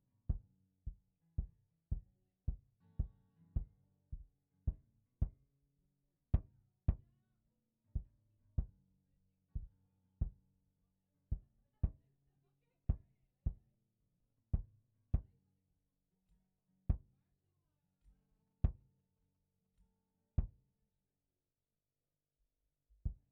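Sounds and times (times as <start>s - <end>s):
kick drum: 0.3s - 5.4s, 6.4s - 7.1s, 8.0s - 8.8s, 9.6s - 10.4s, 11.3s - 12.0s, 12.9s - 13.6s, 14.6s - 15.4s, 16.9s - 17.1s, 20.4s - 20.6s, 23.0s - 23.2s.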